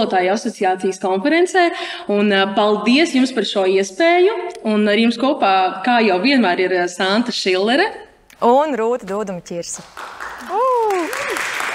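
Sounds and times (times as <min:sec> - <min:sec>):
speech: 0:00.0 - 0:10.2
crowd applause: 0:09.9 - 0:11.7.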